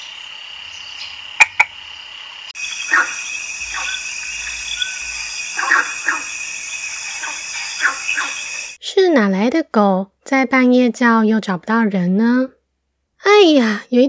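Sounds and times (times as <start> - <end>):
tree frog mating call: 0.0 - 8.8
speech: 9.2 - 12.6, 13.2 - 14.0.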